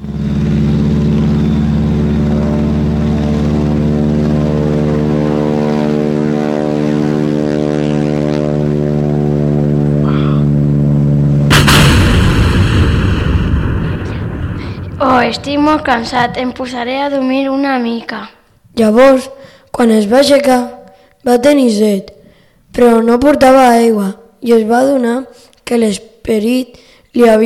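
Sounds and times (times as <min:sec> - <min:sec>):
propeller airplane engine drone: 0:00.0 - 0:20.1, 0:26.8 - 0:27.2
airplane crashing in the Sahara desert: 0:11.5 - 0:17.2
speech: 0:15.6 - 0:27.4.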